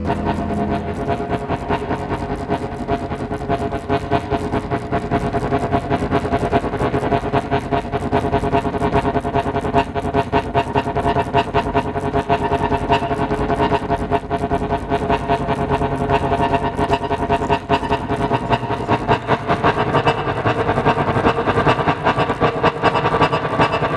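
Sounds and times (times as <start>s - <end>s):
saxophone: 0.0s - 23.8s.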